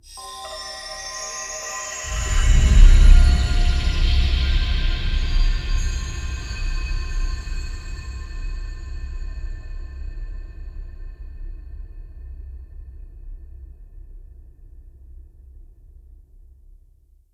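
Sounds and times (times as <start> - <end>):
intro stinger music loop: 0.1 - 8.3.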